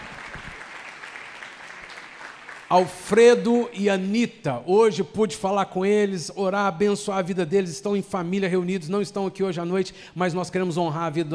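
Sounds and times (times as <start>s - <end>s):
audience applauding: 0.0s - 2.9s
speech: 2.7s - 11.3s.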